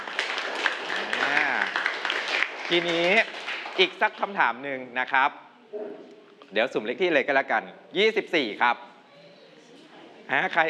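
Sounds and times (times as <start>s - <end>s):
pupils in a Thai classroom clapping for a classmate: 0.0s - 4.2s
speech: 2.7s - 8.9s, 10.3s - 10.6s
teacher speaking: 8.5s - 10.6s.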